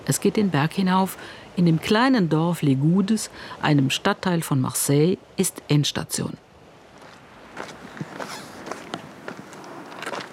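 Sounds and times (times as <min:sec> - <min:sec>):
speech: 0:00.1 - 0:06.4
slow crunching footsteps on loose gravel: 0:06.9 - 0:10.3.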